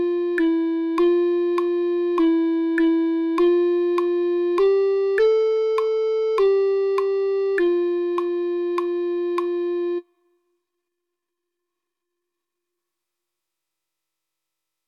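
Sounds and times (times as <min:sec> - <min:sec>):
flute melody: 0:00.0 - 0:10.0.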